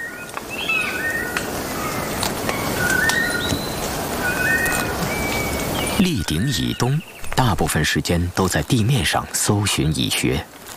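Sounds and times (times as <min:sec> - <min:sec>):
territorial bird song: 0:00.0 - 0:07.9
speech: 0:06.0 - 0:10.6.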